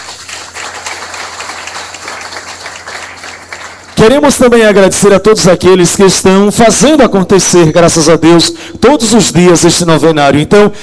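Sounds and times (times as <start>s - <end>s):
round of applause: 0.0s - 4.0s
speech: 4.0s - 10.8s.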